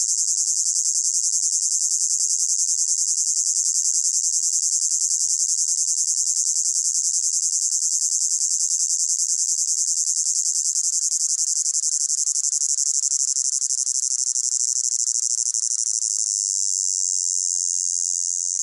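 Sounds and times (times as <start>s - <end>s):
cicada droning with high pulsating buzz: 0.0s - 18.6s.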